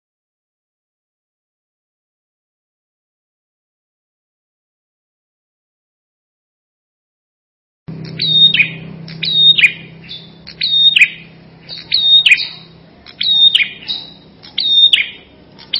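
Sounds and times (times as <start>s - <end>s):
Ashy tailorbird singing: 7.9s - 15.7s.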